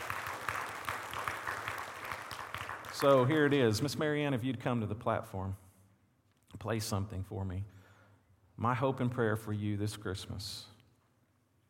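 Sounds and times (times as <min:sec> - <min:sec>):
audience applauding: 0:00.0 - 0:03.7
speech: 0:03.0 - 0:05.6, 0:06.6 - 0:07.8, 0:08.6 - 0:10.7.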